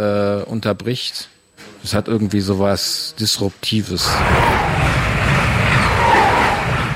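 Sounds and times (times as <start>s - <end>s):
speech: 0.0s - 4.8s
train passing by: 4.0s - 6.9s.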